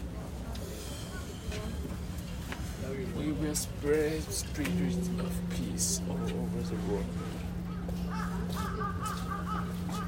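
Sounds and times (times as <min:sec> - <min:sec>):
steady low hum: 0:00.0 - 0:10.0
crow cawing: 0:07.7 - 0:10.0.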